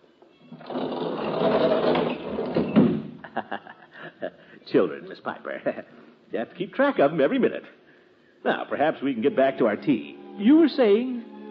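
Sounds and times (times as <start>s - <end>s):
door being closed: 0.4s - 3.2s
laughter: 3.2s - 4.4s
speech: 4.7s - 7.8s, 8.4s - 11.3s.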